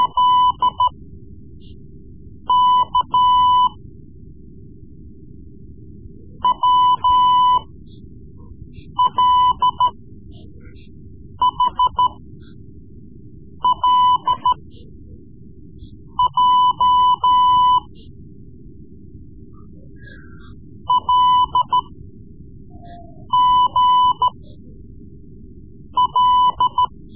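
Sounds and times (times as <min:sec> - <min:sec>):
Morse code lessons: 0:02.5 - 0:03.7, 0:06.5 - 0:07.6, 0:09.0 - 0:09.9, 0:11.4 - 0:12.2, 0:13.6 - 0:14.6, 0:16.2 - 0:17.9, 0:20.9 - 0:21.8, 0:22.8 - 0:24.4, 0:26.0 - 0:27.1.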